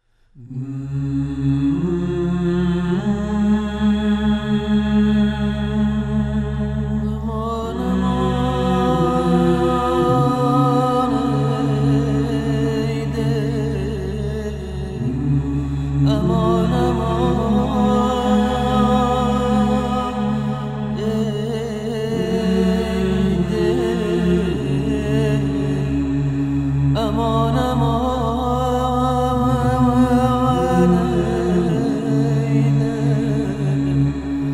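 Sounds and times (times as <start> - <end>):
vocal: 0.3 - 34.5.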